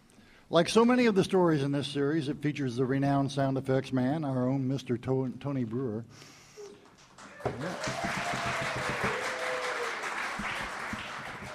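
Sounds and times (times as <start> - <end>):
speech: 0.5 - 6.4, 7.4 - 8.3
audience applause: 7.2 - 11.5.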